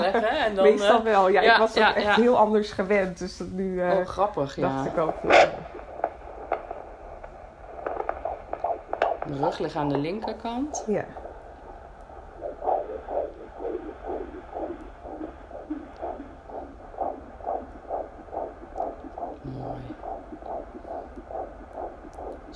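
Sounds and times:
speech: 0.1 - 5.8, 9.3 - 11.2
constant low hum: 4.0 - 22.5
fetal heartbeat on doppler monitor: 4.6 - 22.5.

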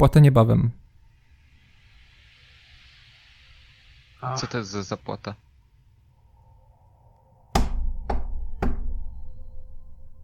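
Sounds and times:
speech: 0.0 - 0.8, 4.2 - 5.4
low steady hum: 0.0 - 10.2
knocking on a door: 7.6 - 9.1.

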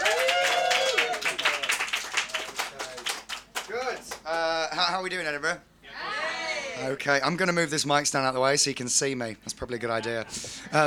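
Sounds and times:
comedy club audience in Edinburgh clapping for a stand-up comedian: 0.0 - 4.5
speech: 4.3 - 5.7, 6.8 - 10.8.

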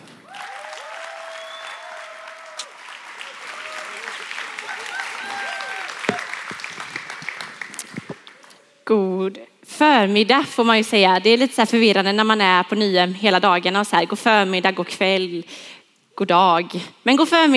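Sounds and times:
audience applause: 0.2 - 8.7
speech: 8.9 - 17.5.

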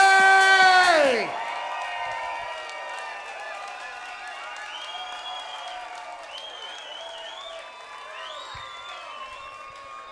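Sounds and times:
long held shout: 0.0 - 1.6
crowd cheering: 0.0 - 10.1.

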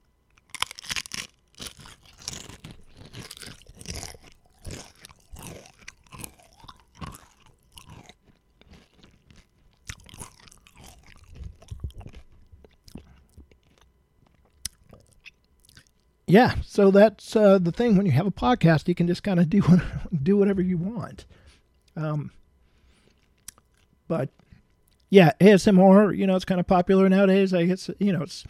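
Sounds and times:
potato chips being crunched and chewed: 0.3 - 16.2, 22.8 - 25.1
speech: 16.3 - 21.4, 22.0 - 22.4, 24.1 - 24.4, 25.1 - 28.4.

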